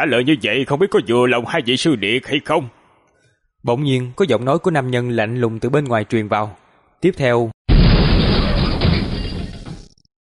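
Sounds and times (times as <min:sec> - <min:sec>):
speech: 0:00.0 - 0:02.8, 0:03.6 - 0:07.6
large stone meditation-chamber door bursting with rocks flying: 0:07.7 - 0:10.1.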